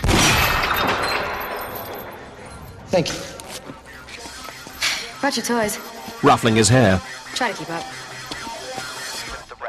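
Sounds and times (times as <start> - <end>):
gunshot breaking a chain: 0.0 - 1.8
speech: 2.9 - 3.3, 5.2 - 8.1.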